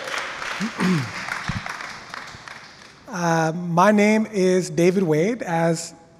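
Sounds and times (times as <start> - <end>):
church audience clapping for a reader: 0.0 - 3.1
speech: 0.6 - 1.2, 3.1 - 6.0.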